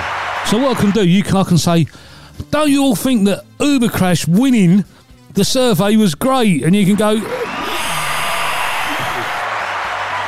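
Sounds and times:
canned applause sound effect: 0.0 - 1.3, 7.2 - 10.2
speech: 0.5 - 7.4.

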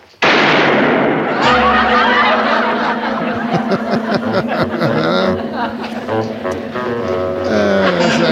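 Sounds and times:
pistol gunshot: 0.2 - 1.3
people talking and chuckling: 1.4 - 8.3.

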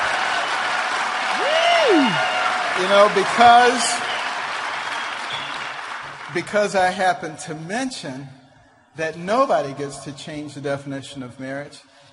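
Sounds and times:
audience cheering and applauding: 0.0 - 6.8
speech: 2.8 - 3.9, 6.3 - 8.4, 9.0 - 11.9.

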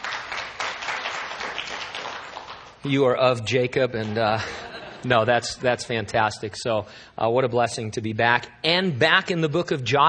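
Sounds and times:
audience applause: 0.0 - 2.8
speech: 2.8 - 10.0
laughter: 3.9 - 5.9.

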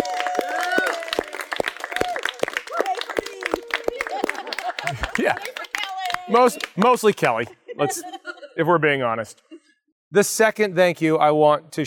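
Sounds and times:
audience applause: 0.0 - 7.4
laughter: 3.3 - 8.9
speech: 5.2 - 5.6, 6.3 - 9.4, 10.1 - 11.8.

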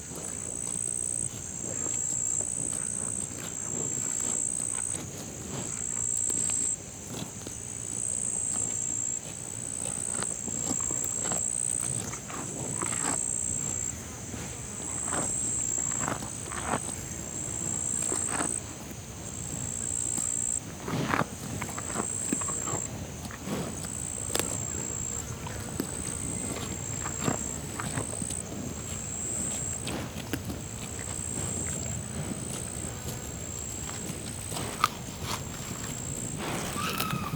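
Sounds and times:
insects buzzing chorus in the floodplain: 0.0 - 37.3
low rumbles: 24.1 - 37.3.

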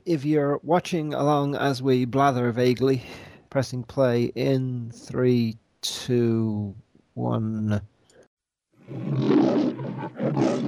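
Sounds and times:
speech: 0.0 - 7.9, 8.9 - 10.6
deep animal roar: 8.9 - 10.6.

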